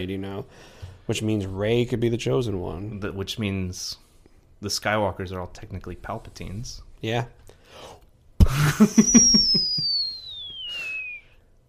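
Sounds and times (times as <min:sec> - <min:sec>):
speech: 0:00.0 - 0:04.0, 0:04.6 - 0:09.8
whistle: 0:08.8 - 0:11.5.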